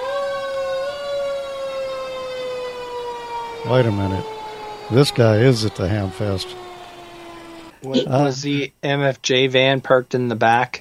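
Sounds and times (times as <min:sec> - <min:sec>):
fire truck siren: 0:00.0 - 0:07.8
speech: 0:03.6 - 0:06.6, 0:07.8 - 0:10.7.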